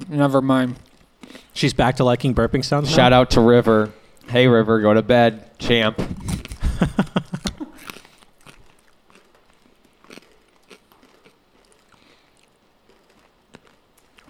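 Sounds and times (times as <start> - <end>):
speech: 0.1 - 0.9, 1.6 - 6.2, 6.8 - 7.3
chewing corn nuts: 0.7 - 1.6, 6.2 - 14.2
crunching ranch corn nuts: 7.2 - 14.2.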